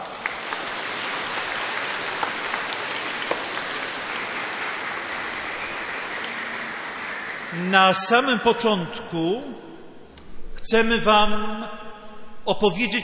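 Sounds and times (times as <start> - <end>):
audience applause: 0.0 - 9.0
speech: 7.6 - 9.6, 10.6 - 11.8, 12.5 - 13.0.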